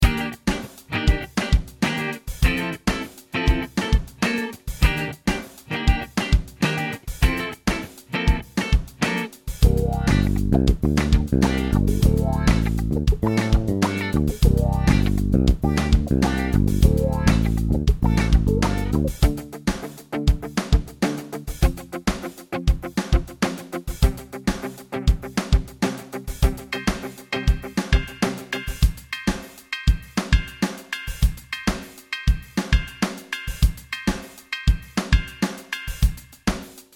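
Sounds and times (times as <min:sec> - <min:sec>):
16th note drum groove: 0:00.0 - 0:24.6, 0:25.2 - 0:36.7.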